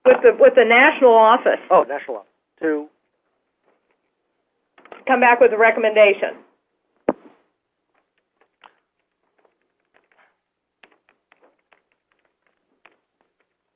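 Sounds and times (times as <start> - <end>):
speech: 0.3 - 3.0, 5.1 - 6.5
fast typing on a computer keyboard: 8.3 - 13.7.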